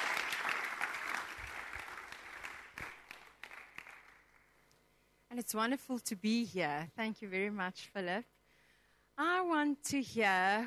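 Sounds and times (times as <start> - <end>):
church congregation applause welcoming a speaker: 0.0 - 4.5
speech: 5.4 - 8.4, 9.2 - 10.6.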